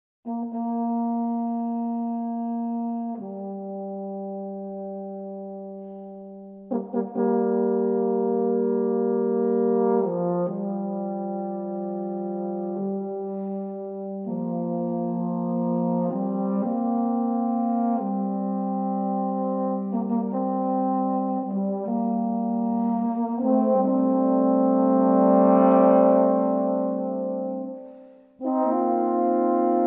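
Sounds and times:
low brass fanfare: 0.3s - 29.8s.

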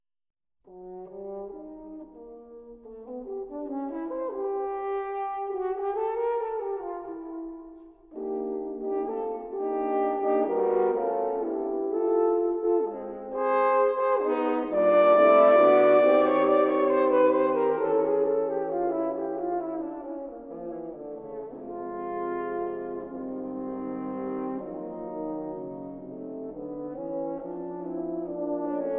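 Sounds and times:
horn quartet playing moderato: 0.7s - 28.9s.

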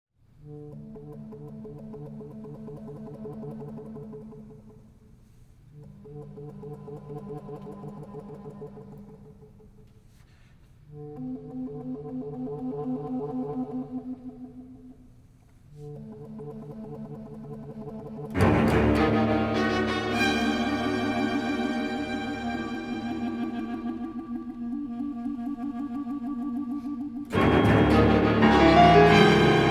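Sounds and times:
clarinet concerto: 18.4s - 29.6s.

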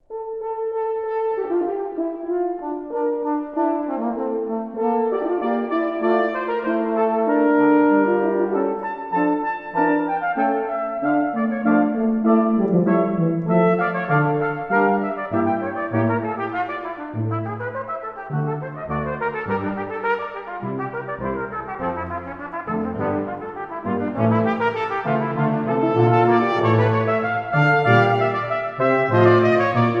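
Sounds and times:
brass quintet playing a fugue: 0.1s - 29.9s.

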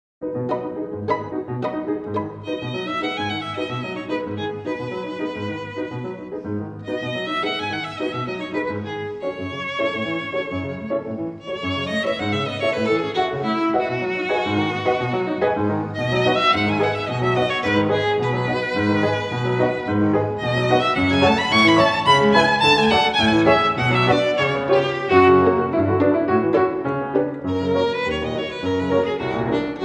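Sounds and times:
violin and piano: 0.2s - 29.8s.

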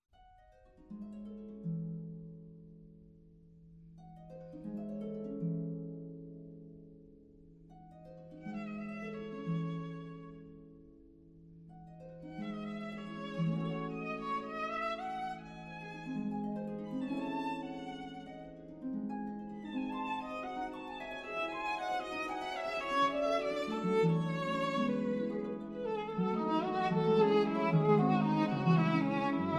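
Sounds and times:
harp: 0.1s - 29.5s
violin: 8.4s - 10.5s, 12.2s - 18.7s, 19.6s - 29.5s.

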